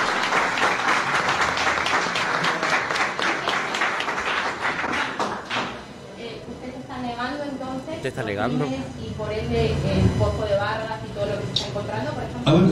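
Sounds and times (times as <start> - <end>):
audience applause: 0.0 - 5.9
speech: 8.0 - 12.7.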